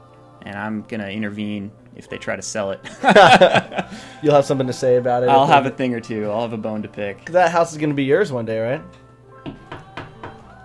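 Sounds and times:
speech: 0.4 - 9.0
laughter: 2.8 - 4.3
knocking on a chair: 9.4 - 10.5.

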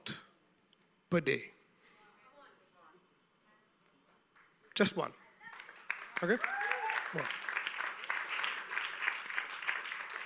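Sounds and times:
speech: 1.1 - 1.6, 4.8 - 5.2, 6.2 - 7.4
audience applause: 5.4 - 10.2.

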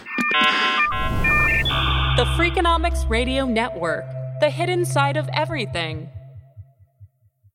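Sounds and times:
car alarm going off outside: 0.1 - 3.0
speech: 2.5 - 6.2.

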